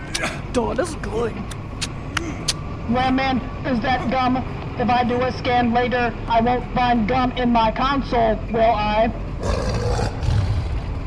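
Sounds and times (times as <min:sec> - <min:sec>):
speech: 0:00.2 - 0:01.6, 0:02.3 - 0:09.6
big cat roaring: 0:09.4 - 0:11.0.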